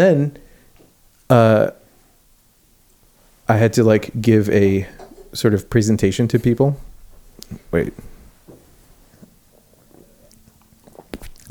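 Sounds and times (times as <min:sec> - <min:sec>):
speech: 0:00.0 - 0:00.4, 0:01.3 - 0:01.8, 0:03.5 - 0:08.1
sipping beer: 0:09.2 - 0:11.4.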